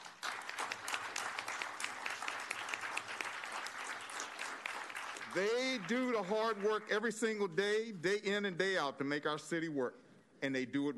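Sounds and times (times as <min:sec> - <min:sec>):
audience applause: 0:00.0 - 0:07.2
speech: 0:05.3 - 0:10.9.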